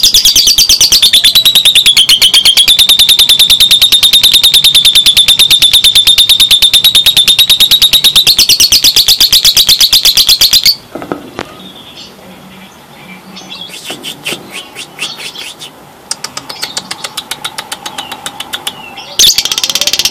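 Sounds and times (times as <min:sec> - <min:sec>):
lovebird singing a rapid rattling trill: 0:00.0 - 0:10.8, 0:16.5 - 0:20.0.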